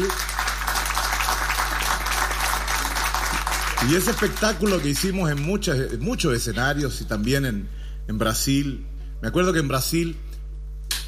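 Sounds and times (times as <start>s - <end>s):
audience applause: 0.0s - 5.8s
speech: 3.8s - 10.2s.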